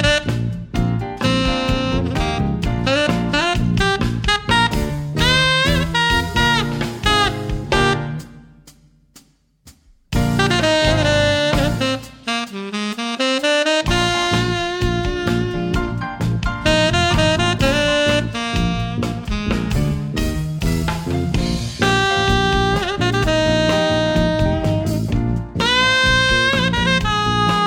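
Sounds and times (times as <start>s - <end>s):
rock tenor saxophone solo: 0.0s - 8.5s, 10.2s - 20.4s, 21.5s - 27.6s.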